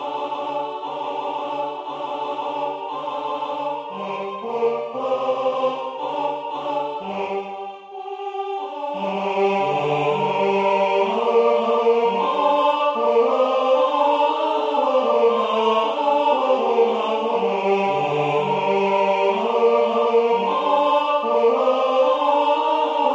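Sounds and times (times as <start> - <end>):
tenor voice singing: 0.0 - 23.1.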